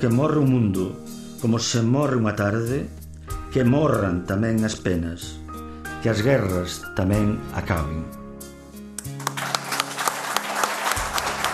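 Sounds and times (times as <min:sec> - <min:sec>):
speech: 0:00.0 - 0:05.4, 0:06.0 - 0:08.2
audience applause: 0:09.0 - 0:11.5.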